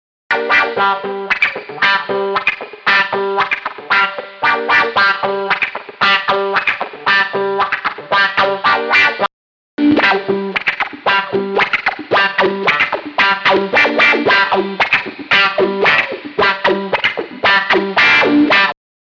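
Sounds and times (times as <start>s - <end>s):
wah effect comparison: 0.3s - 18.7s.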